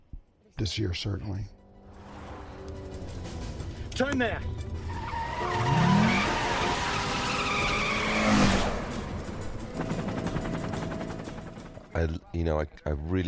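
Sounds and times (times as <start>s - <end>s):
speech: 0.6s - 1.6s, 4.0s - 4.6s, 5.4s - 5.9s, 12.0s - 13.2s
tires screeching: 1.8s - 9.4s
car engines roaring in a car chase: 1.8s - 10.8s
rapid rattling rhythm: 8.8s - 11.9s.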